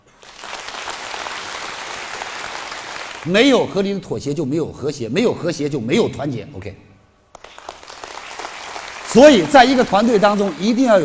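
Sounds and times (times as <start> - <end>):
audience applause: 0.1 - 3.3, 7.4 - 11.0
speech: 3.2 - 6.9, 9.2 - 11.0.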